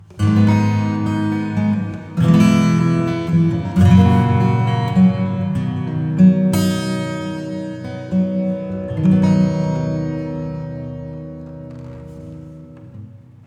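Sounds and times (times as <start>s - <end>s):
acoustic music: 0.0s - 13.4s.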